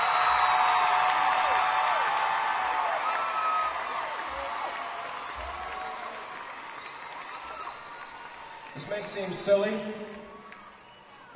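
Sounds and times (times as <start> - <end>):
crowd cheering and applauding: 0.0 - 11.3
whoops and whistles: 5.3 - 8.2, 10.5 - 11.3
speech: 8.8 - 10.2.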